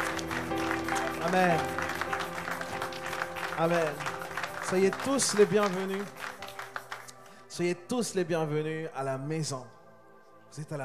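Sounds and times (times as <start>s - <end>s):
audience applauding: 0.0s - 7.2s
speech: 1.3s - 1.8s, 3.6s - 4.1s, 4.7s - 6.2s, 7.6s - 9.8s, 10.5s - 10.8s.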